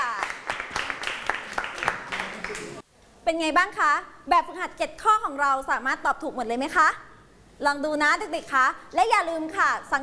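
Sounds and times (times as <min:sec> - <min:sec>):
class clapping for the winning groups: 0:00.0 - 0:02.8
speech: 0:03.3 - 0:10.0.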